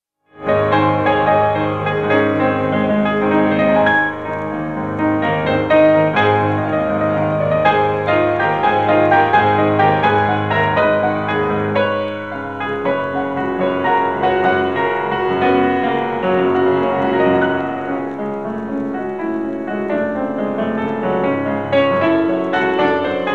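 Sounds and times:
piano barcarolle: 0.3s - 23.3s.

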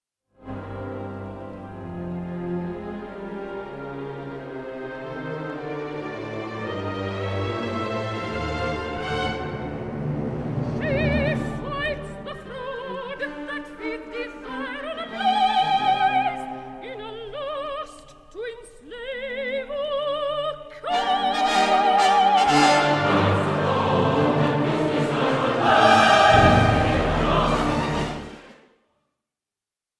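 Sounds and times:
orchestra: 0.4s - 18.0s, 19.2s - 28.7s
chorus singing: 4.4s - 18.0s, 20.2s - 28.7s.

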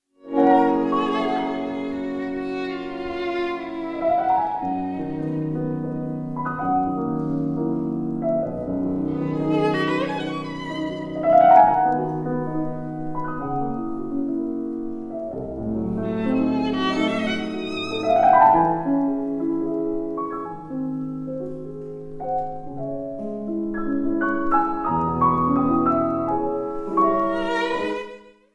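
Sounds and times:
violin sonata: 0.2s - 28.5s.

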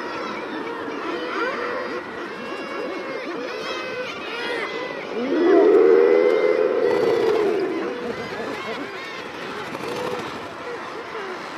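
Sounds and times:
common murre calls, many birds growling: 0.0s - 11.5s
common murre loud drawn-out groaning call: 4.2s - 10.5s.

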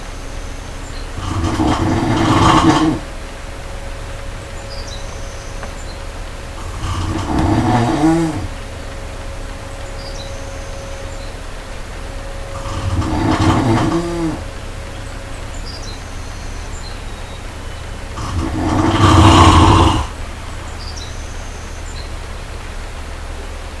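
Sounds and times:
brown bear giving a low droning moan: 1.2s - 3.1s, 6.6s - 8.6s, 12.5s - 14.5s, 18.2s - 20.2s.

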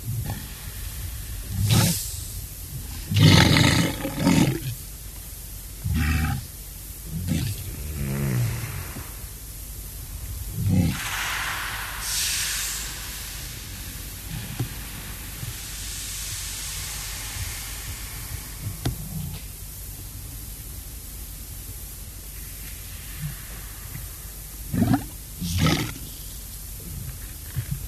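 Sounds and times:
walrus bellowing: 0.0s - 15.8s, 23.2s - 27.8s.

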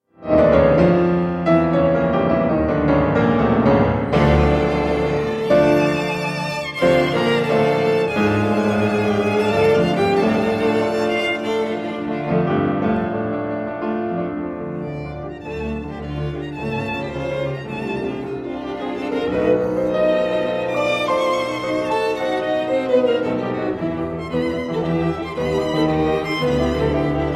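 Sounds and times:
piano quartet in A: 0.0s - 27.3s.

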